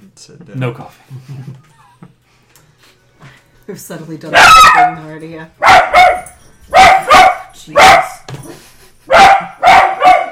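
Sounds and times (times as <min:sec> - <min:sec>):
speech: 0:00.2 - 0:01.8, 0:03.7 - 0:06.2, 0:07.6 - 0:08.0
dog barking: 0:04.3 - 0:08.3, 0:09.1 - 0:10.3.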